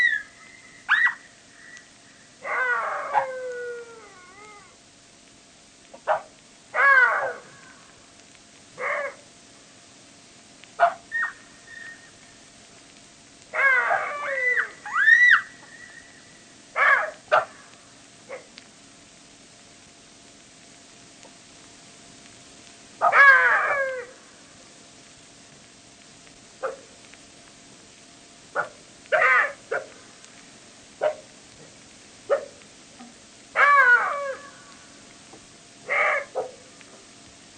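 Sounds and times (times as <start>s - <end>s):
jackal wails and yelps: 0.0s - 1.8s, 2.4s - 4.7s, 6.7s - 7.7s, 8.8s - 9.2s, 10.8s - 12.1s, 13.5s - 16.0s, 16.8s - 17.5s, 23.0s - 24.2s, 28.6s - 29.9s, 33.5s - 34.8s, 35.8s - 36.6s.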